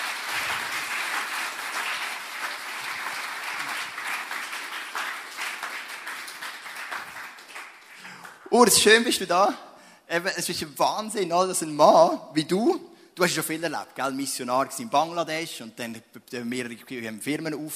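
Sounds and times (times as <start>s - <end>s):
big round of applause: 0.0s - 9.1s
speech: 8.5s - 17.7s.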